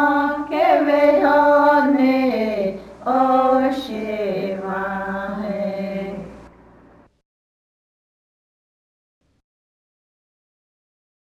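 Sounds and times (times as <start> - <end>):
hymnbook songs in Cheyenne language: 0.0 - 6.5.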